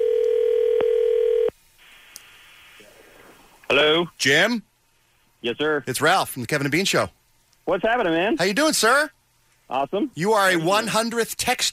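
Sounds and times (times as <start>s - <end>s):
telephone ringing tone on outgoing call: 0.0s - 1.5s
speech: 4.2s - 4.7s, 5.4s - 11.7s.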